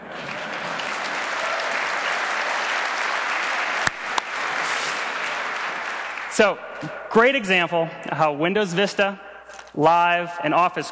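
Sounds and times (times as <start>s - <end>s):
audience applause: 0.0s - 6.9s
speech: 6.4s - 9.2s, 9.8s - 10.9s.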